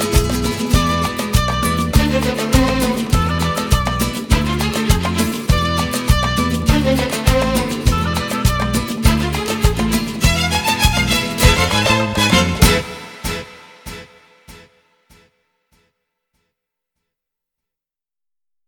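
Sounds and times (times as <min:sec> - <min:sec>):
instrumental music: 0:00.0 - 0:14.8.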